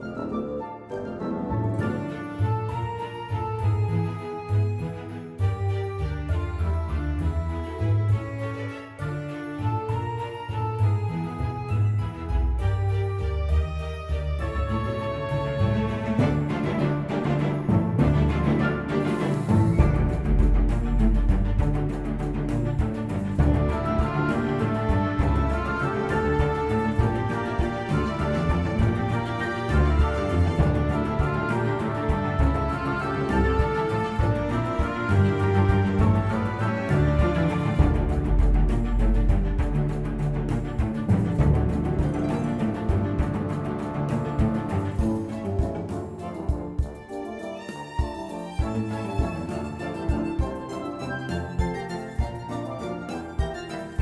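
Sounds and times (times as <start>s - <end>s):
comical battle music: 0.0s - 13.6s, 14.2s - 54.0s.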